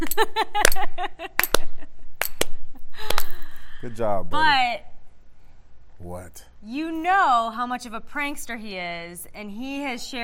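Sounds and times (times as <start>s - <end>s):
speech: 0.0s - 1.3s, 3.8s - 4.9s, 6.0s - 10.2s
slow hand claps: 0.0s - 3.4s.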